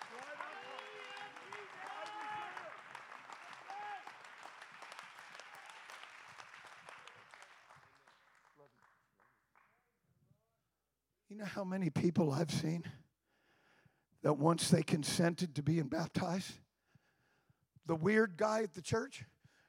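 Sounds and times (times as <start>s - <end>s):
cheering voices: 0.0s - 7.5s
audience clapping: 0.0s - 9.9s
speech: 11.4s - 13.0s, 14.2s - 16.6s, 17.9s - 19.3s.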